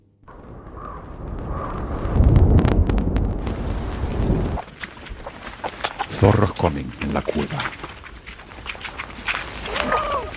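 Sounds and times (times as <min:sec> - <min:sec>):
distant thunder in a valley: 0:00.2 - 0:05.3
rain: 0:00.3 - 0:10.3
speech: 0:06.2 - 0:07.8.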